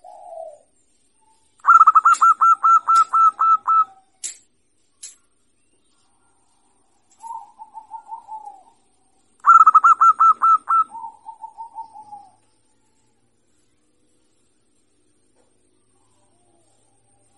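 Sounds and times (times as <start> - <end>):
zebra dove cooing: 0.0 - 0.8, 1.6 - 4.2, 7.2 - 12.9.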